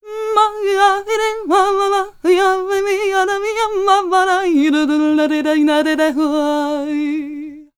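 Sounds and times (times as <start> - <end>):
vocals in Balkan traditional style: 0.0 - 7.7.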